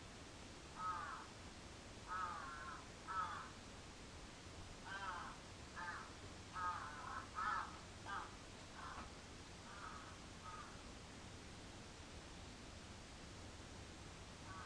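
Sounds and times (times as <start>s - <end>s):
quiet hum: 0.0s - 14.6s
crow cawing: 0.8s - 1.3s, 2.1s - 3.6s, 4.8s - 10.8s, 14.4s - 14.6s.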